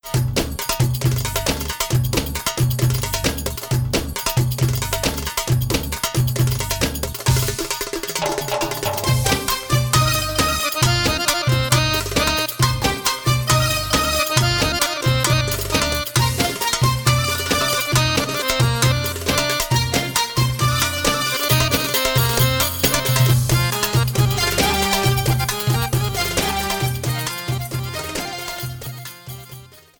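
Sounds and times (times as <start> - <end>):
bellydance music: 0.0 - 29.9.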